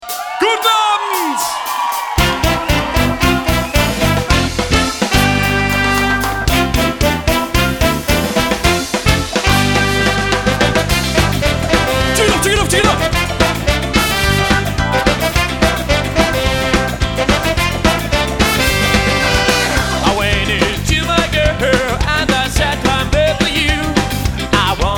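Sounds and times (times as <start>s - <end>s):
ska music: 0.0s - 24.9s.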